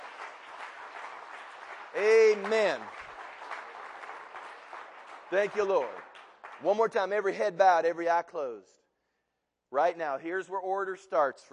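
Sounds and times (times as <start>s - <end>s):
crowd applause: 0.0s - 7.3s
speech: 2.0s - 3.0s, 5.3s - 6.0s, 6.6s - 8.8s, 9.7s - 11.5s.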